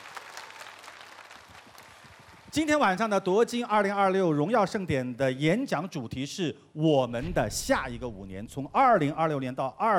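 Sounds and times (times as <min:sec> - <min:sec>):
warm applause welcoming 26 investors at an awards gala: 0:00.0 - 0:02.6
speech: 0:02.6 - 0:09.9.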